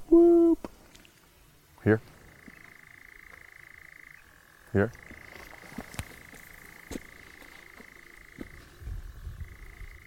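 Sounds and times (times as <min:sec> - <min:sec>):
speech: 0:01.8 - 0:02.1, 0:04.7 - 0:05.2
nightjar churring: 0:02.1 - 0:10.0.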